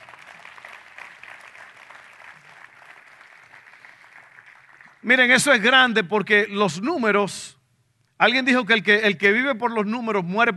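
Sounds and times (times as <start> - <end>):
audience applause: 0.0 - 5.0
speech: 5.0 - 7.6, 8.2 - 10.5.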